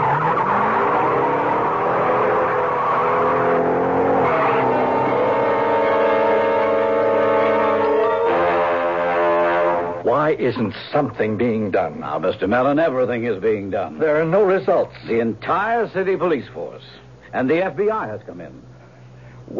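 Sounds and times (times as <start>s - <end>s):
getaway car engine revving and driving off: 0.0s - 10.0s
tires squealing: 0.0s - 10.0s
speech: 10.2s - 18.7s.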